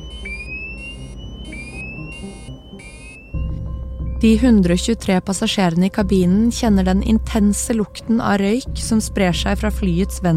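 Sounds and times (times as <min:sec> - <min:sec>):
aircraft cockpit fire alarm: 0:00.0 - 0:04.8
low aircraft engine rumble: 0:00.0 - 0:10.3
speech: 0:04.2 - 0:10.3.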